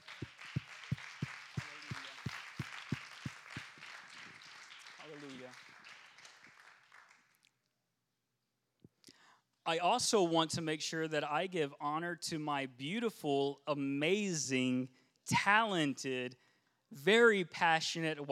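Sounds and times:
audience hand clap of appreciation: 0.0 - 7.2
speech: 9.7 - 18.3.

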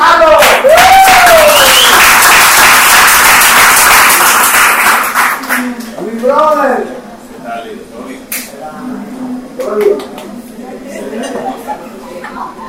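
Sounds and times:
audience applauding: 0.0 - 5.9
rising whoop or cheer: 0.4 - 2.2
laughter: 10.7 - 12.6.

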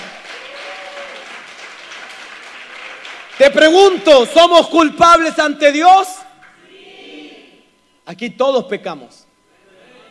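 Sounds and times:
crowd cheer: 0.0 - 3.2
audience applause: 0.0 - 3.6
speech: 3.4 - 6.2, 8.1 - 9.2.

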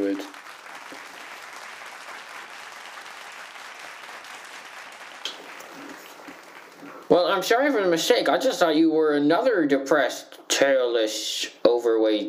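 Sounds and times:
audience applause: 0.0 - 7.5
speech: 7.1 - 12.2.

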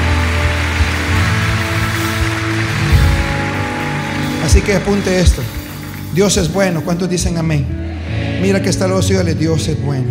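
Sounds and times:
loud audience applause: 0.0 - 6.8
low steady musical drone: 0.0 - 10.0
speech: 4.5 - 10.0.

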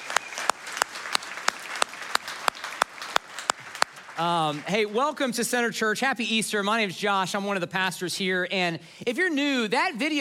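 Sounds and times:
church audience clapping during an Easter service: 0.0 - 5.5
speech: 4.2 - 10.1.

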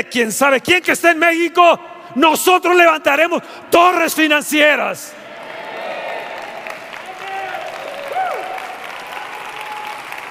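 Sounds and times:
speech: 0.0 - 5.2
crowd applauding: 5.2 - 10.2.

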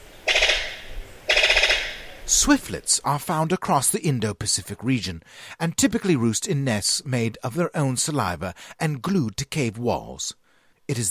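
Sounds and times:
brown sicklebill rapid rattling call: 0.2 - 2.3
speech: 2.3 - 11.0.

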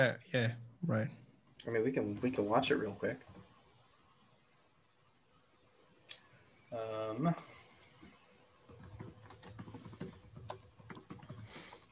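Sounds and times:
speech: 0.0 - 3.4, 6.7 - 7.5
typing on a computer keyboard: 8.7 - 11.9.

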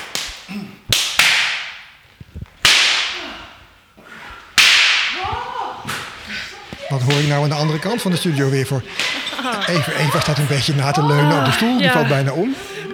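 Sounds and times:
dull slaps on bare buttocks: 0.0 - 3.7, 4.5 - 7.4
laughter: 5.2 - 12.9
speech: 7.0 - 12.7.

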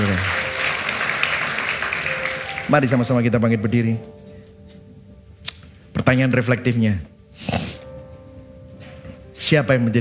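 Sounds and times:
audience applause: 0.0 - 3.2
speech: 2.7 - 4.2, 6.1 - 7.6, 9.5 - 10.0.

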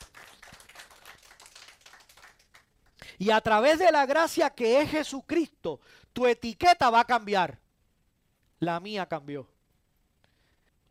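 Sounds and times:
crowd applauding: 0.0 - 2.7
speech: 3.2 - 7.6, 8.6 - 9.5.

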